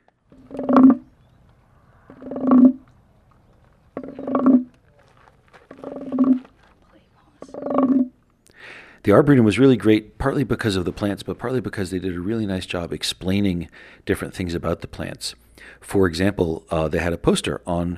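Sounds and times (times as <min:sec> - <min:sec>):
wooden frog croaking when rubbed: 0:00.0 - 0:06.7, 0:07.4 - 0:08.4
speech: 0:09.0 - 0:17.9.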